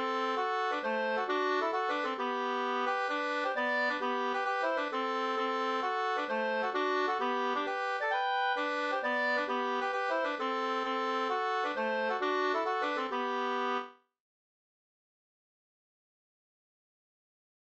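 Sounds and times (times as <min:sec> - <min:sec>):
hambo polska folk dance tune: 0:00.0 - 0:13.9.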